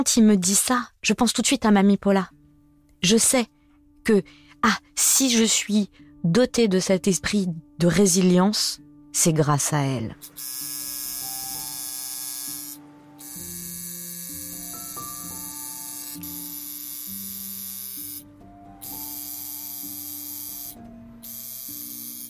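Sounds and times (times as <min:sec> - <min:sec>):
speech: 0:00.0 - 0:02.4, 0:03.0 - 0:10.7
tattoo artist's needle buzzing: 0:10.2 - 0:22.2.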